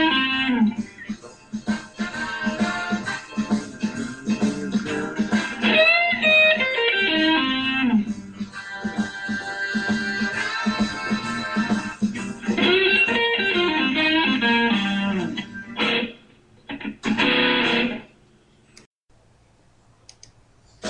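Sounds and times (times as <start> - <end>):
opening guitar licks: 0.0 - 1.0, 2.0 - 8.3, 9.8 - 18.2.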